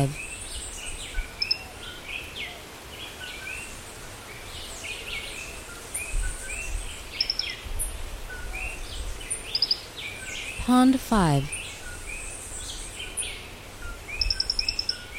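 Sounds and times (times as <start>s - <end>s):
speech: 0.0s - 0.2s, 10.7s - 11.6s
birds chirping and trilling: 0.0s - 10.6s, 11.4s - 15.1s.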